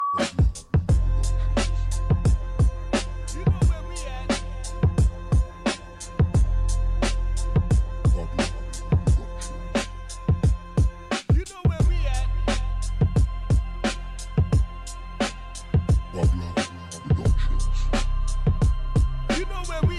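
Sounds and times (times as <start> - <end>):
gospel music: 0.2 - 19.9.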